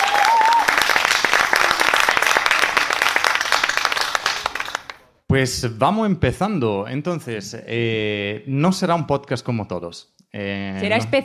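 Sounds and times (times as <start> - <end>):
audience applause: 0.0 - 5.1
speech: 5.3 - 11.2.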